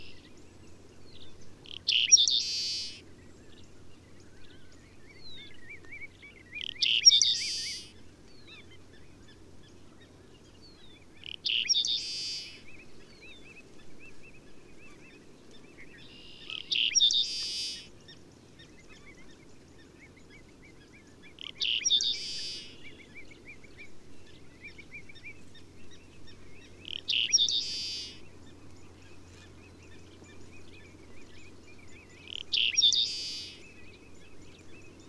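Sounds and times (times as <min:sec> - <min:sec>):
Seaside Sparrow singing: 0:00.0 - 0:35.0.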